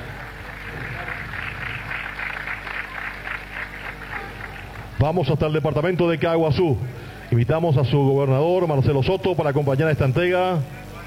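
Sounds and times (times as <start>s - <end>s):
audience applause: 0.0s - 5.4s
speech: 5.0s - 10.8s.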